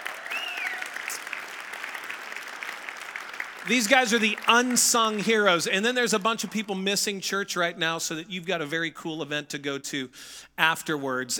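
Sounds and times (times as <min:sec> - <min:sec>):
crowd applause: 0:00.0 - 0:05.6
high whistles: 0:00.2 - 0:01.2
speech: 0:03.6 - 0:11.3.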